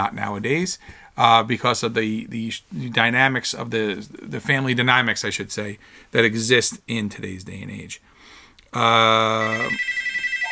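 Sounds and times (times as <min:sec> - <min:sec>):
speech: 0:00.0 - 0:10.0
telephone ringing: 0:09.2 - 0:10.4.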